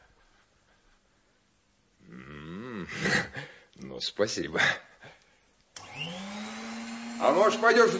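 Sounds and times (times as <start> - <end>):
speech: 4.0 - 4.9, 7.2 - 7.9
vacuum cleaner running: 5.8 - 7.9.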